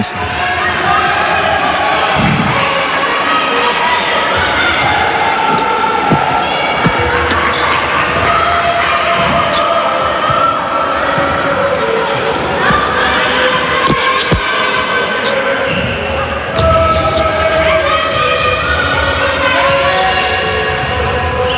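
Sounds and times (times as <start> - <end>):
crowd roar at a basketball game against the Nea Ionia team: 0.0 - 21.5
thuds: 5.5 - 7.2
basketball bouncing on the court: 5.5 - 8.4.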